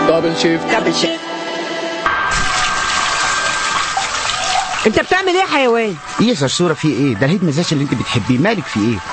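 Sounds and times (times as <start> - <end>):
speech: 0.1 - 1.3, 4.8 - 9.1
water running during hair washing: 2.3 - 9.1.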